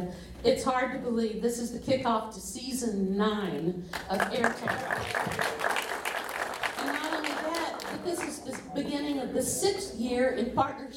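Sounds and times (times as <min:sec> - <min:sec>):
speech: 0:00.1 - 0:05.9, 0:08.0 - 0:10.9
audience applause: 0:04.1 - 0:08.7.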